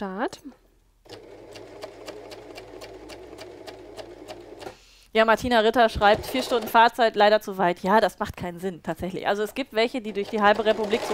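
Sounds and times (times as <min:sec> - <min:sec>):
speech: 0:00.0 - 0:01.2, 0:05.2 - 0:11.1
sewing machine stitching a fabric cuff: 0:01.0 - 0:04.8, 0:06.0 - 0:06.9, 0:10.0 - 0:11.1.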